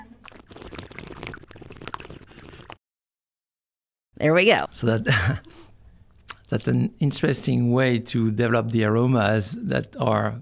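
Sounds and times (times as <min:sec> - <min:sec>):
wine slurped to aerate and taste it: 0:00.0 - 0:02.8
speech: 0:04.2 - 0:05.5, 0:06.5 - 0:10.4.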